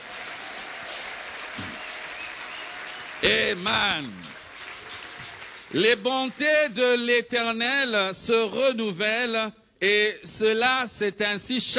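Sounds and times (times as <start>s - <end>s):
church congregation clapping after a scripture reading: 0.0s - 7.1s
speech: 3.2s - 4.3s, 5.7s - 11.7s.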